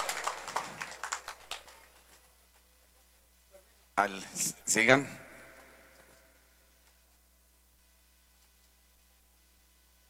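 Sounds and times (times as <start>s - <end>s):
crowd applause in an assembly hall: 0.0s - 2.3s
speech: 4.0s - 5.2s.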